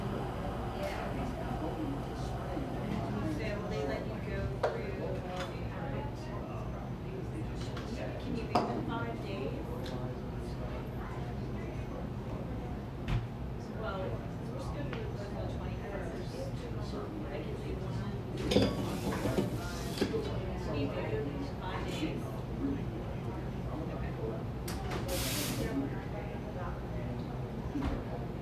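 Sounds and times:
murmur of voices in a coffee shop: 0.0s - 28.4s.

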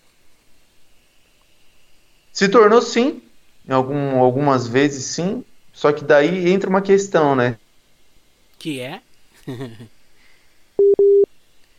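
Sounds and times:
speech: 2.4s - 7.6s, 8.6s - 10.0s
laughter: 9.4s - 9.9s
telephone busy tone after a live call dropped: 10.8s - 11.3s.

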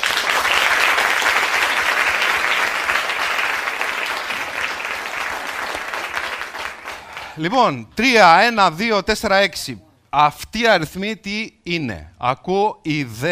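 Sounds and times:
audience applause: 0.0s - 7.4s
speech: 7.4s - 13.2s.

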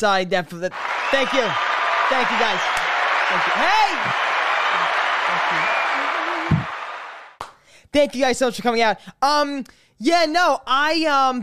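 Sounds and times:
speech: 0.0s - 5.8s, 7.9s - 11.4s
crowd noise: 0.7s - 7.4s
audience clapping: 0.7s - 7.6s.

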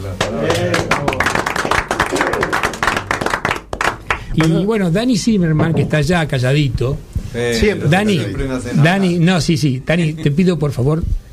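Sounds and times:
speech: 0.1s - 1.2s, 4.4s - 11.2s
applause: 0.2s - 4.7s.

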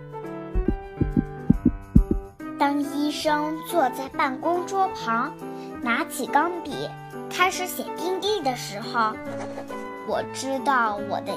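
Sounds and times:
heartbeat heard through a stethoscope: 0.6s - 2.4s
speech: 2.6s - 11.3s.

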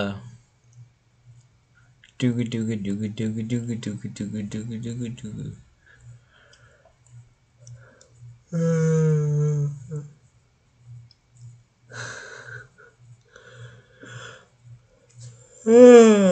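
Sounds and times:
speech: 0.0s - 0.2s, 2.2s - 5.6s, 8.5s - 10.2s, 15.6s - 16.2s
person yawning: 8.6s - 10.1s, 15.7s - 16.2s.

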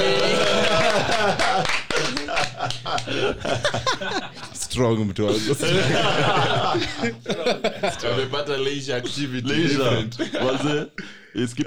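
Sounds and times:
hands clapping: 0.0s - 3.8s
laughter: 0.0s - 11.6s
speech: 4.8s - 11.6s.

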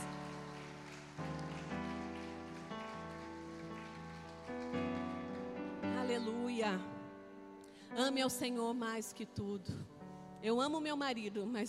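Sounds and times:
audience clapping hands: 0.0s - 6.4s
sustained keyboard chords: 0.0s - 7.9s
speech: 6.1s - 6.9s, 7.9s - 11.6s.

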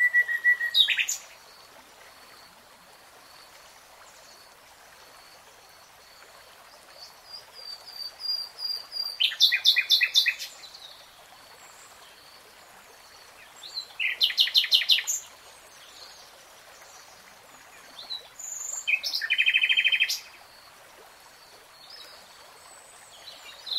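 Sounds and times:
nightingale song: 0.0s - 1.9s, 6.7s - 20.5s, 21.5s - 23.7s.

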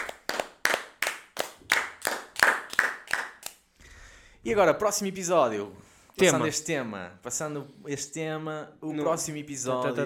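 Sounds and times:
audience applause: 0.0s - 3.5s
speech: 4.4s - 10.0s.

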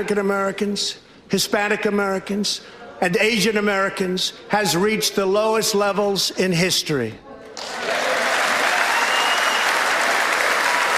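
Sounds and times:
speech: 0.0s - 8.0s
large audience applauding in a chamber: 7.6s - 10.9s.

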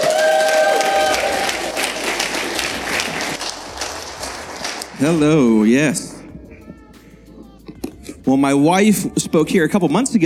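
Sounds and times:
church congregation applauding a guest pastor: 0.0s - 5.4s
speech: 5.0s - 6.2s, 8.3s - 10.2s.

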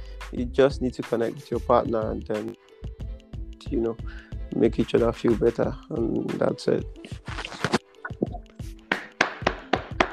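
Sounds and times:
speech: 0.3s - 2.6s, 3.7s - 7.4s
hand clapping: 8.9s - 10.1s.

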